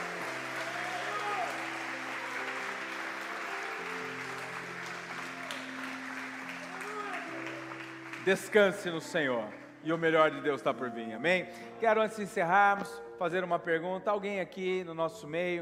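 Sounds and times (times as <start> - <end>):
audience applauding: 0.0 - 10.2
sustained organ or keyboard chords: 0.0 - 15.5
speech: 8.2 - 15.5.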